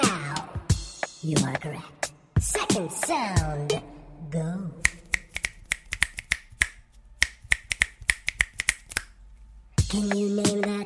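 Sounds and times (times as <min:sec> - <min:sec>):
speech: 0:01.2 - 0:04.9, 0:09.9 - 0:10.8
finger snapping: 0:04.8 - 0:09.1.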